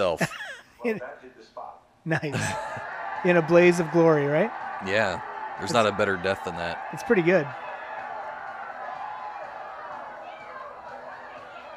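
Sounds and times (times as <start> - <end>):
speech: 0.0 - 7.7
laughter: 2.1 - 3.0
crowd cheering and roaring: 2.4 - 11.7.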